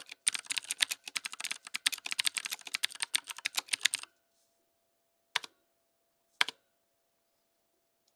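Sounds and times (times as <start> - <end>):
tenkey tactile keyboard clicks: 0.0 - 4.1.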